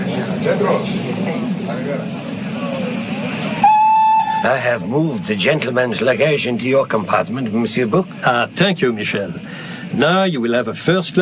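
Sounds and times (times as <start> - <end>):
murmuring voices: 0.0 - 10.0
busy station rumble: 0.0 - 11.2
train whistle blast: 3.5 - 4.9
speech: 4.4 - 11.2.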